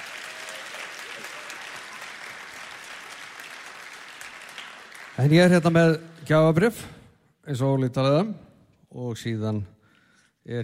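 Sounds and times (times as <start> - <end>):
crowd applauding at a music competition award ceremony: 0.0 - 6.2
speech: 5.2 - 9.8, 10.4 - 10.6.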